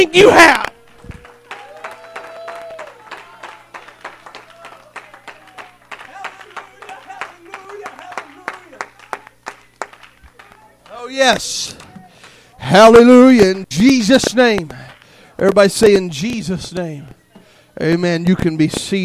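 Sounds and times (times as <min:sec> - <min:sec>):
speech: 0:00.0 - 0:00.7, 0:11.2 - 0:11.8, 0:12.7 - 0:14.8, 0:15.4 - 0:17.2, 0:17.8 - 0:19.0
audience clapping hands: 0:00.0 - 0:11.1, 0:11.7 - 0:12.4, 0:14.6 - 0:15.2.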